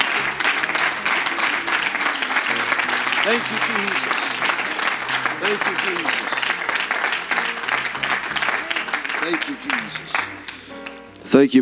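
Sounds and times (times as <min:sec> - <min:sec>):
laughter: 0:00.0 - 0:10.8
audience applauding: 0:00.0 - 0:11.2
speech: 0:03.3 - 0:04.2, 0:05.4 - 0:06.4, 0:09.2 - 0:10.5, 0:11.3 - 0:11.6.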